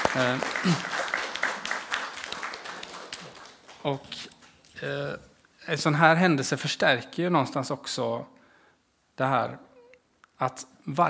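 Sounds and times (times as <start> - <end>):
audience applause: 0.0 - 4.7
speech: 0.1 - 1.0, 3.8 - 8.4, 9.2 - 9.7, 10.4 - 11.0.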